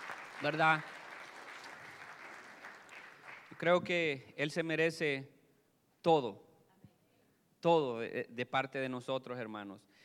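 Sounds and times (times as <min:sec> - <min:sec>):
audience applauding: 0:00.0 - 0:03.9
speech: 0:00.4 - 0:00.9, 0:03.6 - 0:05.4, 0:06.0 - 0:06.5, 0:07.6 - 0:09.9.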